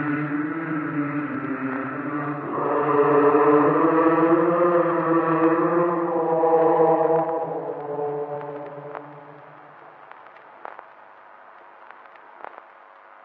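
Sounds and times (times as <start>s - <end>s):
imp chanting: 0.0s - 9.6s.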